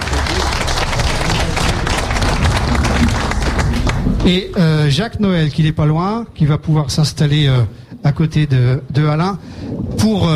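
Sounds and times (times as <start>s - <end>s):
audience applauding: 0.0s - 4.8s
speech: 4.2s - 10.3s.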